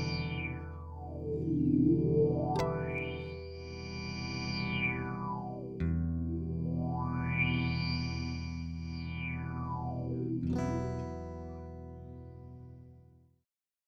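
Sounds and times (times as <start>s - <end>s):
synth: 0.0s - 10.9s
bass guitar: 0.0s - 13.2s.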